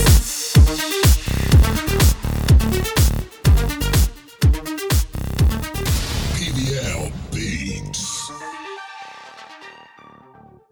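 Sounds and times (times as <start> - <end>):
jazz music: 0.0 - 6.6.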